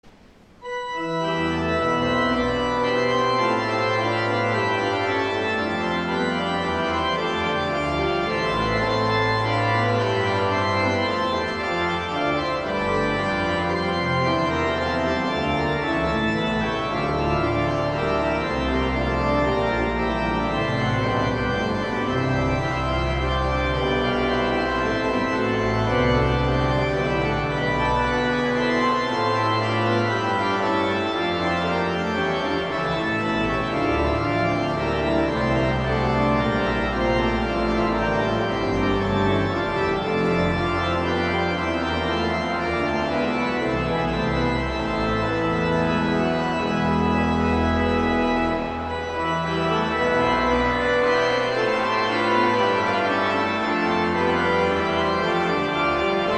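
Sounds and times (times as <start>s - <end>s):
organ chorale prelude: 0.0s - 56.3s.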